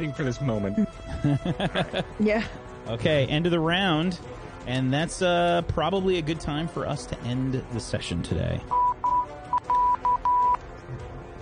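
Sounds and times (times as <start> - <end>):
speech: 0.0 - 8.8
laughter: 1.0 - 2.6
telephone keypad tones: 8.7 - 10.6.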